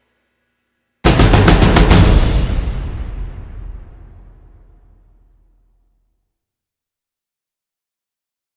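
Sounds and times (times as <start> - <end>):
drums: 1.0 - 4.8.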